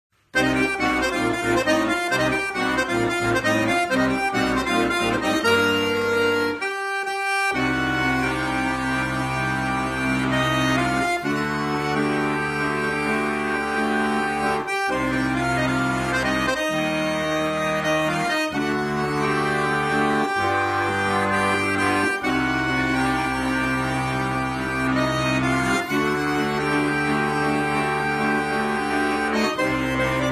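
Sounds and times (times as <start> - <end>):
accordion: 0.1 - 30.2.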